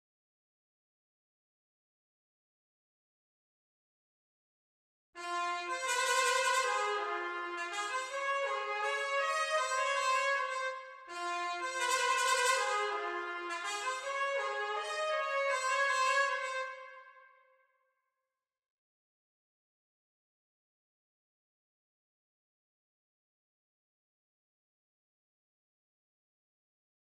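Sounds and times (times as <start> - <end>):
B-flat trumpet playing: 5.2 - 17.3.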